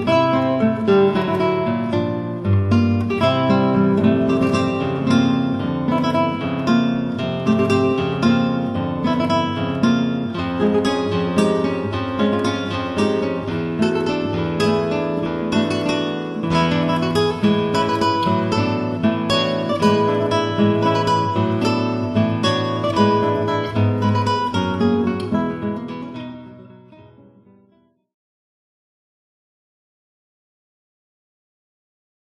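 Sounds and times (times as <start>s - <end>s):
three guitars playing: 0.0s - 27.7s.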